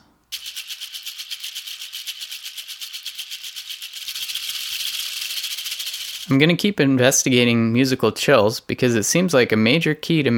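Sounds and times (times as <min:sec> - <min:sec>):
shaker tracks panned hard left and right: 0:00.0 - 0:06.4
speech: 0:06.3 - 0:10.3.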